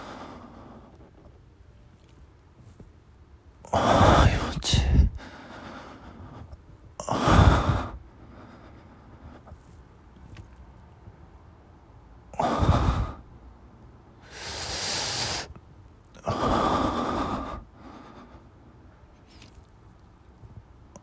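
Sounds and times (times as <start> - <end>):
breathing during masturbation: 0.0 - 1.2, 4.0 - 6.6, 7.4 - 9.8, 14.2 - 15.5, 16.2 - 18.6.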